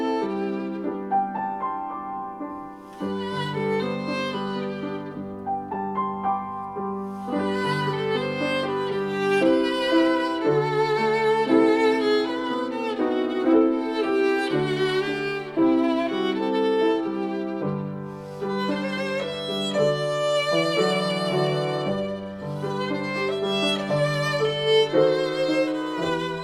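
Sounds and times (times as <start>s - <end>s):
piano: 0.0s - 26.4s
violin: 0.0s - 26.4s.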